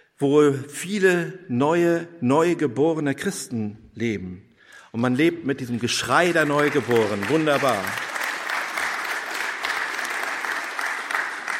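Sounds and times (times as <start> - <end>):
speech: 0.2 - 8.1
audience applause: 6.0 - 11.5.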